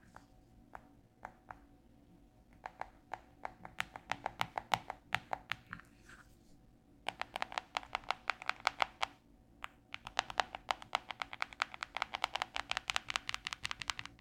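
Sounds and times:
fingertips tapping on a cellphone screen and case: 2.6s - 5.8s, 7.1s - 14.1s.

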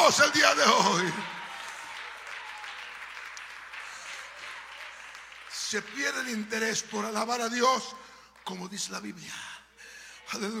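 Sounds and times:
audience applause: 0.0s - 7.6s
speech: 0.1s - 1.4s, 5.7s - 9.6s, 10.3s - 10.5s.

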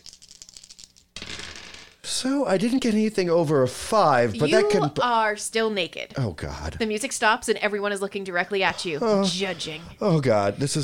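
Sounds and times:
dice rolling: 0.0s - 2.0s
speech: 2.2s - 10.8s.

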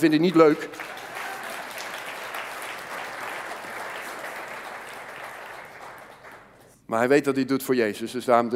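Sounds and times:
speech: 0.0s - 1.0s, 6.9s - 8.5s
audience applause: 0.0s - 6.6s.

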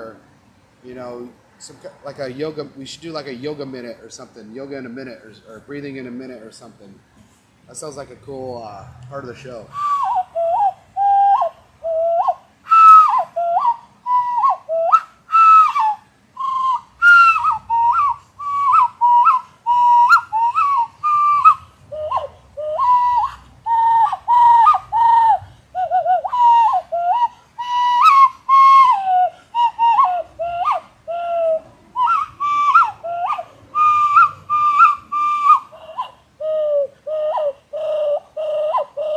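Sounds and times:
speech: 0.8s - 7.1s, 7.7s - 10.0s
hand flute melody: 9.6s - 39.1s.

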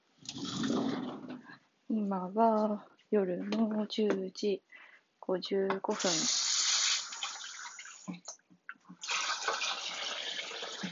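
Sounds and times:
speech: 1.9s - 6.4s
tap water running: 5.9s - 8.4s, 9.0s - 10.8s.

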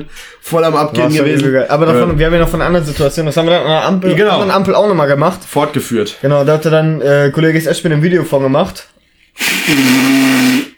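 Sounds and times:
speech: 0.0s - 10.7s
nose blowing: 9.4s - 10.7s.

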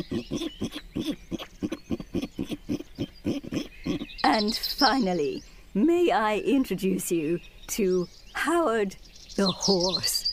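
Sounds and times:
speech: 0.0s - 1.2s, 4.4s - 10.1s
pig oinking: 0.0s - 4.1s.

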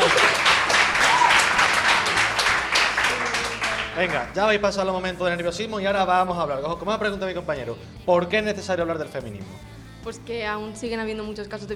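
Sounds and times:
audience applause: 0.0s - 4.4s
speech: 4.0s - 11.7s.

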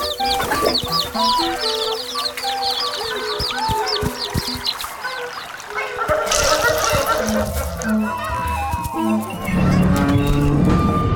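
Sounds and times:
farm hens clucking: 0.0s - 11.0s
higher bird chirps: 0.0s - 11.0s
faint splash of water: 3.9s - 8.0s.

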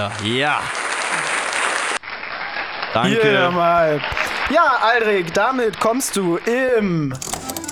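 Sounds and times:
speech: 0.0s - 1.3s, 2.9s - 7.4s
applause: 0.0s - 3.0s.

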